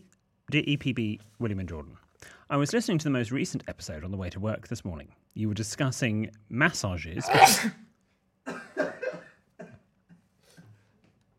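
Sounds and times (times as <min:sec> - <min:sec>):
speech: 0:00.5 - 0:07.8
person sneezing: 0:07.2 - 0:07.9.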